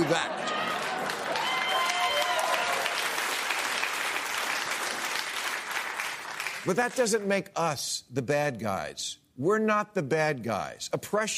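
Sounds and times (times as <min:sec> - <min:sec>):
studio audience clapping: 0:00.0 - 0:07.4
speech: 0:00.1 - 0:00.4, 0:06.6 - 0:11.3.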